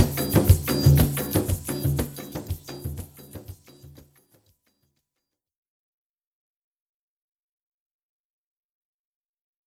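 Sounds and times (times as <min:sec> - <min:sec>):
instrumental music: 0:00.0 - 0:05.0.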